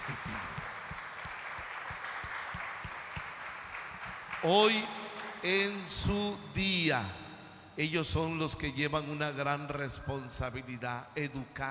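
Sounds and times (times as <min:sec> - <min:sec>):
crowd applauding: 0:00.0 - 0:06.0
speech: 0:04.4 - 0:07.2, 0:07.8 - 0:11.6.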